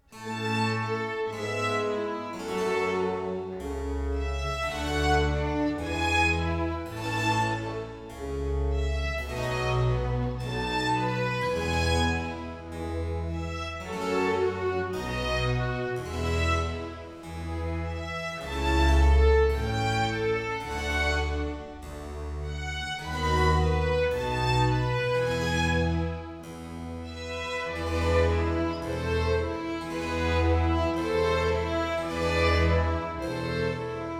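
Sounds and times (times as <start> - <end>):
andante movement of a concerto for strings and harpsichord: 0.0 - 34.1.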